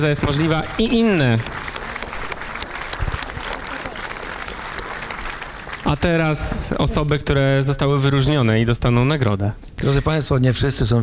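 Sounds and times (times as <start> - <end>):
speech: 0.0 - 1.7, 5.9 - 11.0
audience applause: 0.0 - 6.8.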